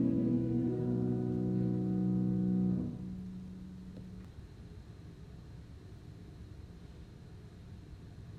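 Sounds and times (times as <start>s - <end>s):
sisters singing a hymn in a chapel: 0.0s - 3.0s.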